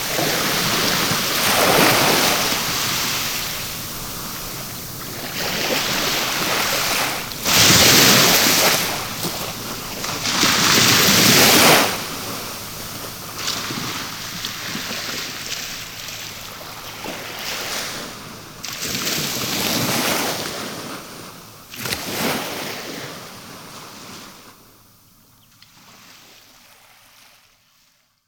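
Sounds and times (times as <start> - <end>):
sea foam: 0.0 - 20.5.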